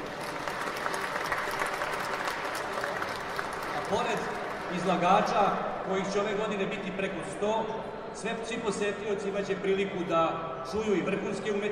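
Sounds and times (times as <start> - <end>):
audience applause at a large fair: 0.0 - 5.4
speech: 3.9 - 11.7.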